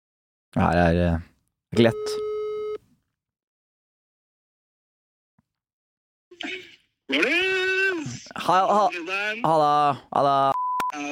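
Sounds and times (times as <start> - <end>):
speech: 0.5 - 2.3, 7.1 - 7.6, 8.3 - 11.1
telephone beep as a call is placed: 1.9 - 2.8, 10.6 - 11.1.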